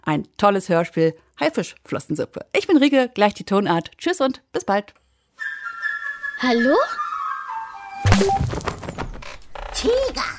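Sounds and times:
speech: 0.0 - 5.5, 6.4 - 7.0, 8.1 - 8.7, 9.8 - 10.3
water balloon thrown and hitting: 8.0 - 9.4.

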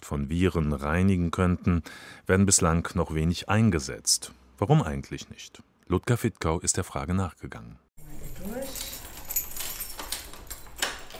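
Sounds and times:
speech: 0.1 - 8.9
keys unlocking a door: 8.0 - 11.1.

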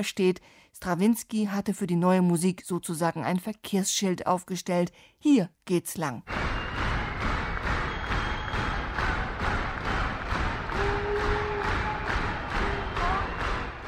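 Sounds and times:
speech: 0.0 - 6.4
audience clapping rhythmically: 6.3 - 13.8.

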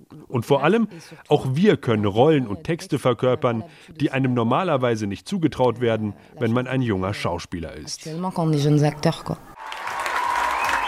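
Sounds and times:
speech: 0.2 - 9.5
theatre audience applause and standing ovation after a performance: 9.6 - 10.8.

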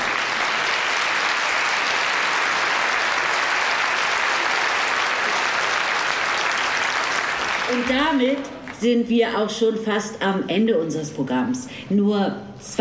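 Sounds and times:
audience applause: 0.0 - 8.8
speech: 7.8 - 12.7.

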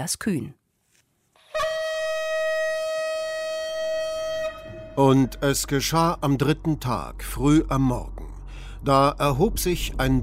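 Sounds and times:
speech: 0.0 - 0.6, 5.0 - 10.2
shofar ram's horn blast: 1.4 - 6.6.

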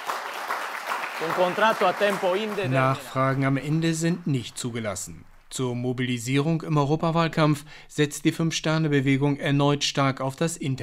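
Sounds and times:
Five Star Movement party supporters clapping at a press conference: 0.0 - 5.5
speech: 1.2 - 10.8.

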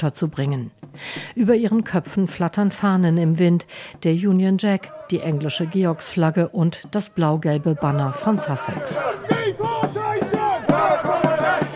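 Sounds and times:
speech: 0.0 - 9.7
protest crowd chanting a slogan: 4.6 - 11.7.

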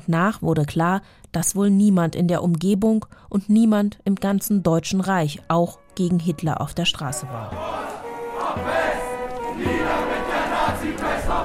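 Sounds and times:
speech: 0.1 - 7.9
marching demonstrators chanting: 7.3 - 11.4.

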